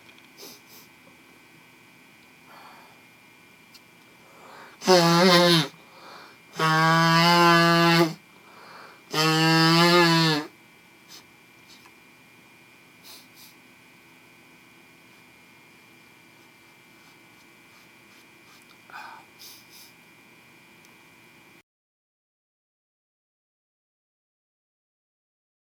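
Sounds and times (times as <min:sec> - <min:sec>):
man with hay fever blowing congested nose: 0:00.4 - 0:01.0, 0:04.2 - 0:10.5, 0:13.0 - 0:13.6, 0:16.9 - 0:20.0.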